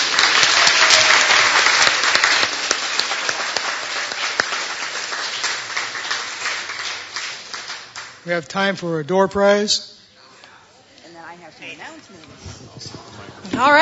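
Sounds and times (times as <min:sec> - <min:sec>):
audience applause for presenters: 0:00.0 - 0:08.4
speech: 0:08.2 - 0:09.9, 0:11.5 - 0:13.7.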